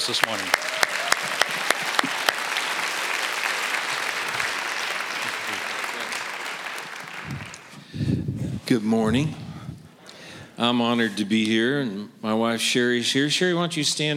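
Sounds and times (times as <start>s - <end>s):
audience applause: 0.0s - 7.9s
speech: 0.1s - 0.9s, 8.7s - 9.4s, 10.6s - 14.1s.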